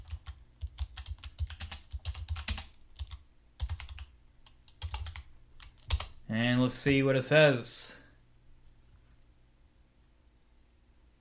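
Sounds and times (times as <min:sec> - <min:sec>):
computer keyboard typing a search into eBay: 0:00.0 - 0:06.2
speech: 0:06.3 - 0:08.0.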